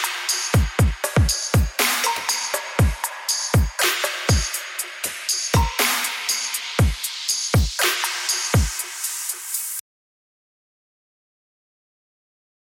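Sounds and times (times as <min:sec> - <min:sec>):
harmony beat: 0:00.0 - 0:09.8.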